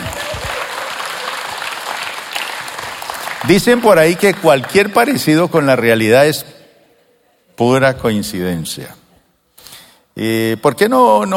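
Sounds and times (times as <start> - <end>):
audience applause: 0.0 - 5.0
speech: 3.4 - 6.6, 7.6 - 9.0, 10.2 - 11.3.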